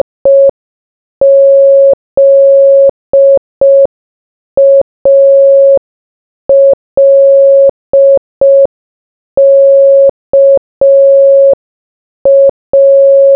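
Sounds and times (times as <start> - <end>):
morse code beeps: 0.0 - 0.6, 1.2 - 3.9, 4.6 - 5.8, 6.5 - 8.7, 9.4 - 11.6, 12.3 - 13.3.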